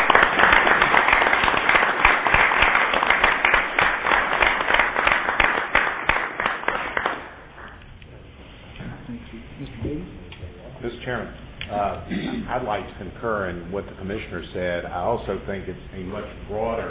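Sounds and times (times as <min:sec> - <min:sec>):
audience applause: 0:00.0 - 0:07.8
speech: 0:12.6 - 0:16.8.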